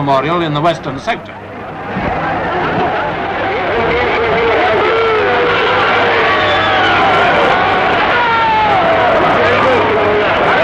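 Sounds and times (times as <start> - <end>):
speech: 0.0 - 1.5
large crowd of demonstrators shouting and jeering: 1.4 - 10.6.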